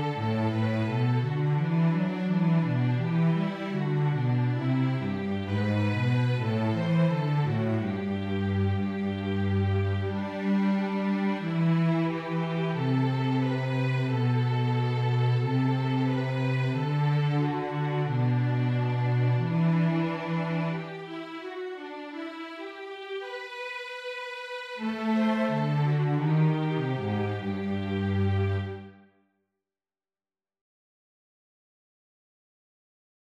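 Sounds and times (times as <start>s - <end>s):
bass: 0.0s - 21.0s, 24.9s - 28.9s.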